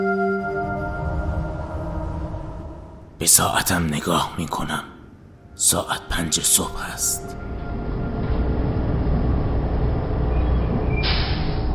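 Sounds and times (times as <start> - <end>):
bus approaching from a distance: 0.2 - 3.2, 7.3 - 11.7
speech: 3.2 - 4.9, 5.6 - 7.6.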